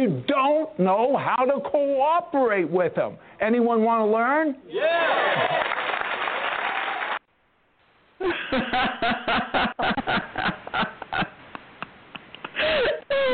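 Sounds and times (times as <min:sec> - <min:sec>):
speech: 0:00.0 - 0:05.9, 0:08.2 - 0:10.9
audience applause: 0:05.0 - 0:07.2.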